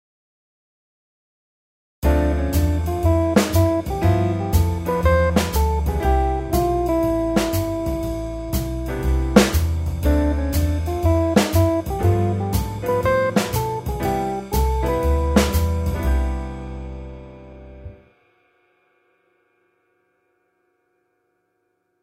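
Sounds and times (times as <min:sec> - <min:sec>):
musical scale: 0:02.0 - 0:18.0.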